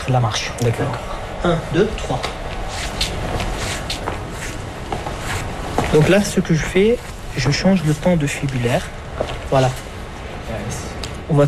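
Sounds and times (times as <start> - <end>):
steady hiss: 0.0 - 11.4
speech: 0.1 - 2.8, 5.9 - 9.9, 10.5 - 11.4
footsteps of a patient walking: 2.1 - 10.0.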